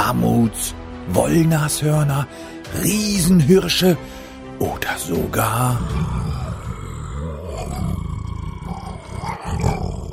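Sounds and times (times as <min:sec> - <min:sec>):
speech: 0:00.2 - 0:06.4
large wild cat roaring: 0:05.7 - 0:10.1.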